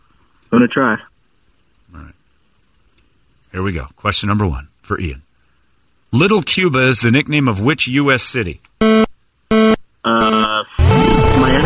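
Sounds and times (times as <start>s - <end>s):
speech: 0.6s - 1.1s, 3.6s - 5.2s, 6.1s - 9.0s
quiz game buzzer: 8.8s - 11.6s.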